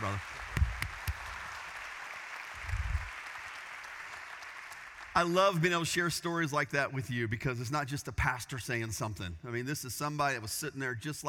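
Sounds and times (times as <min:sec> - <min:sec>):
audience applause: 0:00.0 - 0:05.4
speech: 0:05.2 - 0:11.2.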